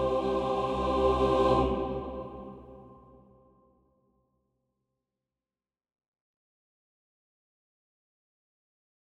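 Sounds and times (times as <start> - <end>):
choir: 0.0 - 3.6.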